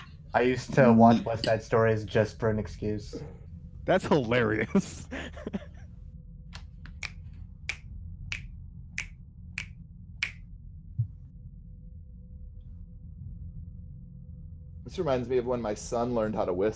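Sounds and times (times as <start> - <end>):
laughter: 0.4 - 3.2, 3.9 - 5.8
speech: 0.4 - 5.7, 15.0 - 16.7
finger snapping: 6.6 - 7.2, 8.3 - 10.4.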